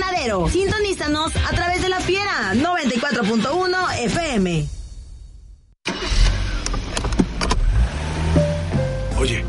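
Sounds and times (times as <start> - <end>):
speech: 0.2 - 4.8
car engine running: 5.9 - 9.4.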